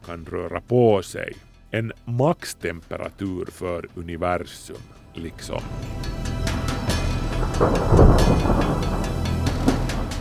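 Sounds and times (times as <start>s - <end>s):
speech: 0.0s - 6.1s, 7.4s - 8.9s
thunderclap from lightning strike: 5.6s - 10.2s
steady rainfall: 7.2s - 10.2s.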